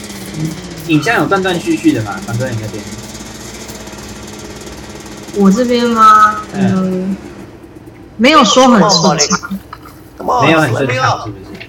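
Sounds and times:
motorcycle engine starting in a video game: 0:00.0 - 0:08.2
speech: 0:00.4 - 0:03.0, 0:05.3 - 0:07.3, 0:08.2 - 0:09.7, 0:10.3 - 0:11.4.

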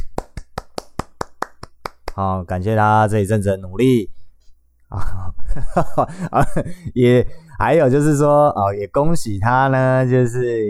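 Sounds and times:
hands clapping: 0:00.0 - 0:02.2
speech: 0:02.2 - 0:04.1, 0:04.9 - 0:10.6.

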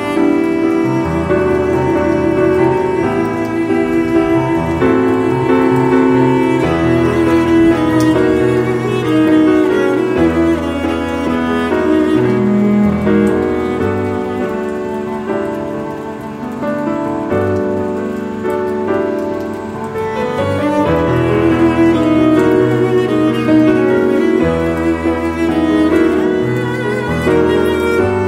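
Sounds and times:
faint steady rain: 0:00.0 - 0:28.2
piano music: 0:00.0 - 0:28.2.

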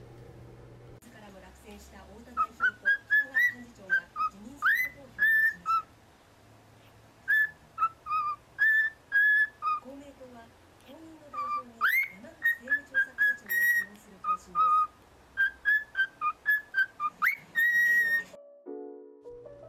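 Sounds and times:
cockatiel whistling a song: 0:02.3 - 0:05.9, 0:07.2 - 0:09.9, 0:11.3 - 0:18.4.

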